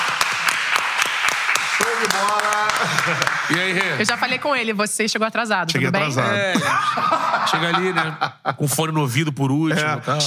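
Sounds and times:
applause: 0.0s - 4.5s
speech: 2.0s - 10.2s
laughter: 2.4s - 4.1s, 6.1s - 9.1s.

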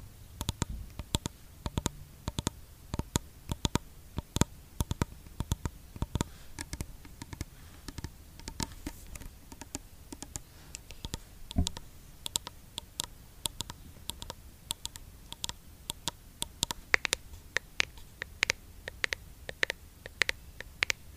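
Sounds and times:
faint steady hum: 0.0s - 21.1s
fingers tapping a skincare product: 0.4s - 8.7s, 9.5s - 10.4s, 13.5s - 21.0s.

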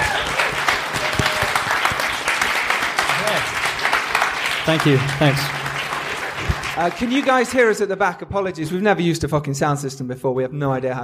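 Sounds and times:
faint voices and whoops: 0.0s - 1.7s
audience applause: 0.0s - 7.8s
speech: 4.7s - 5.6s, 6.8s - 11.0s.

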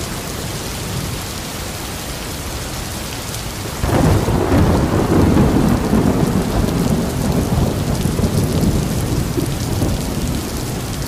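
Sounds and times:
steady rain hissing: 0.0s - 11.0s
deep thunder rumble: 3.8s - 11.0s.

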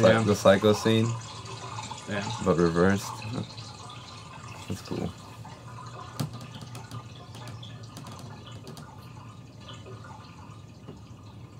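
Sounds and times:
speech: 0.0s - 1.3s, 2.1s - 3.6s, 4.7s - 5.2s
water running from a tap: 0.0s - 11.5s.

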